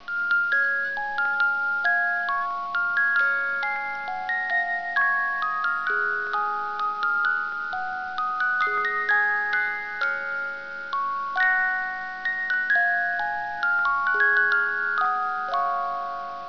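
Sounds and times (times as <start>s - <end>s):
melody: 0.0s - 16.4s.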